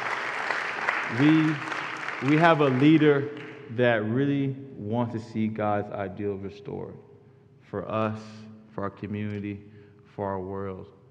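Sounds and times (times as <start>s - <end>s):
crowd clapping steadily: 0.0s - 3.9s
speech: 1.1s - 7.1s, 7.7s - 11.0s.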